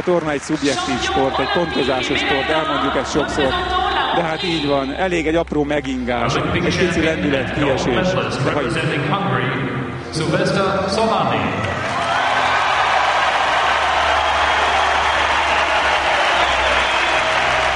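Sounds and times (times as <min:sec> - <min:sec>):
crowd applause at an Olympic gymnastics medal ceremony: 0:00.0 - 0:03.5, 0:11.6 - 0:17.7
speech: 0:00.0 - 0:11.7.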